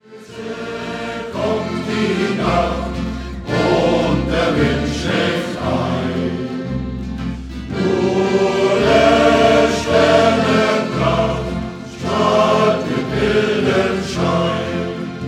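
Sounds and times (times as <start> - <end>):
shanty choir singing: 0.0 - 15.2.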